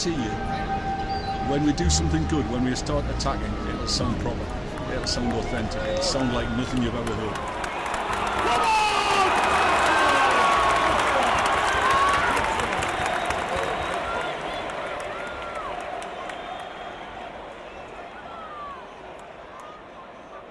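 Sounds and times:
speech: 0.0 - 0.4, 1.4 - 7.6
whistles: 0.0 - 4.2, 5.1 - 8.4, 10.7 - 20.4
crowd clapping: 3.7 - 20.4
football crowd roaring: 5.6 - 20.4.

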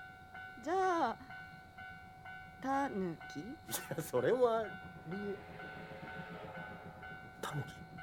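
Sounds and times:
steam train passing: 0.0 - 8.0
speech: 0.6 - 1.3, 2.6 - 5.6, 7.5 - 7.8
rising whine: 3.6 - 8.0.

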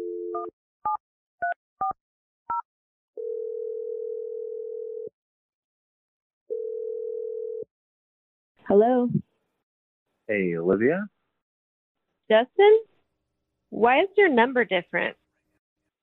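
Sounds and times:
telephone dial tone: 3.2 - 5.1, 6.5 - 7.7
speech: 8.7 - 9.2, 10.3 - 11.2, 12.3 - 12.9, 13.7 - 15.2.

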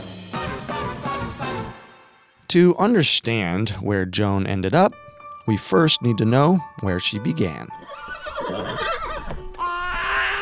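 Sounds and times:
speech: 2.5 - 8.7
pony whinnying: 7.8 - 10.4.

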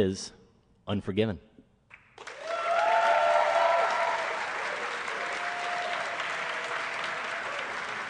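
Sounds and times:
speech: 0.0 - 1.5
audience applause: 2.2 - 8.0.

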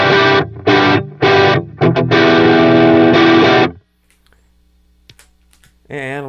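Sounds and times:
heavily distorted electric guitar playing a riff: 0.0 - 3.8.

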